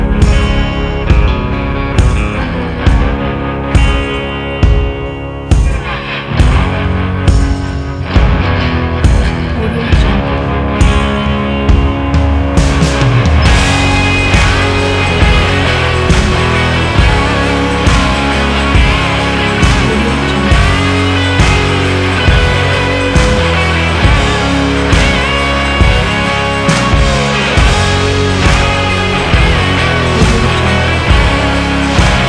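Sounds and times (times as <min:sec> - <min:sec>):
rock music: 0:00.0 - 0:32.2.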